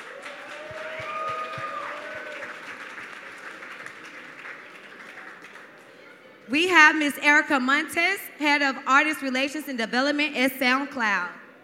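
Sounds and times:
audience clapping to welcome guests at a panel: 0.0 - 5.9
speech: 6.5 - 11.4.

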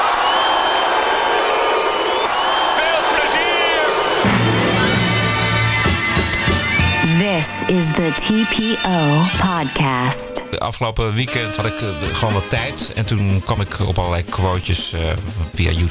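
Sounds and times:
festival crowd applause: 0.0 - 4.2
large festival crowd cheering at Pinkpop 2010: 0.0 - 10.2
speech: 7.6 - 15.8.

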